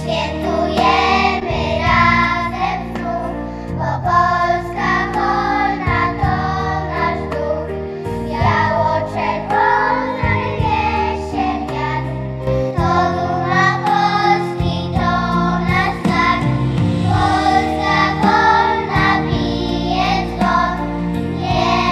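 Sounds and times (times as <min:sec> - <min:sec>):
children singing: 0:00.0 - 0:07.7, 0:08.4 - 0:12.2, 0:12.8 - 0:21.9.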